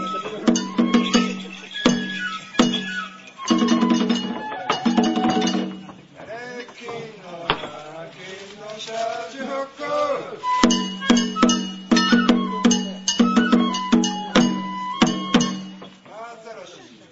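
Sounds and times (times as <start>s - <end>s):
banjo: 0.0s - 6.2s, 10.5s - 16.0s.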